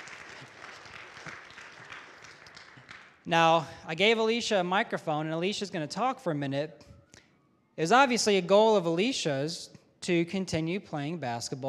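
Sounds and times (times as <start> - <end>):
audience round of applause: 0.0 - 3.2
speech: 3.3 - 6.8, 7.8 - 11.6.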